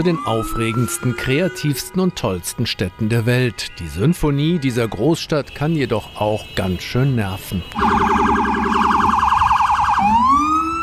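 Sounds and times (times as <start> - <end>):
police or ambulance siren wailing on a New York City street: 0.0 - 2.3, 7.7 - 10.8
speech: 0.0 - 8.1.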